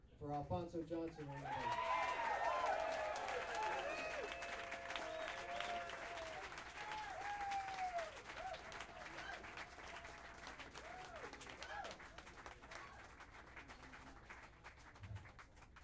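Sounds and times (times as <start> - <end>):
speech: 0.2 - 1.9
audience applause: 1.1 - 15.8.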